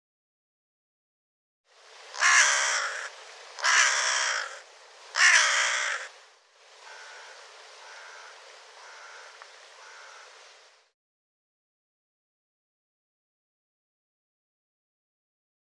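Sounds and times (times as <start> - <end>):
bird cawing: 2.1 - 6.2, 6.8 - 10.5.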